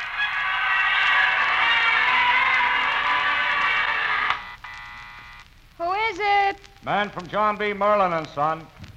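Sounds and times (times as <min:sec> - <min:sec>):
large crowd awaiting the new year in Times Square: 0:00.0 - 0:04.4
speech: 0:06.8 - 0:08.8.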